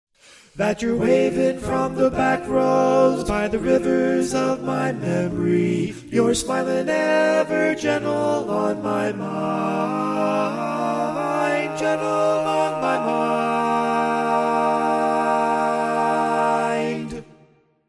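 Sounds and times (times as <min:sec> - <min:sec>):
baritone barbershop singing: 0:00.5 - 0:17.3.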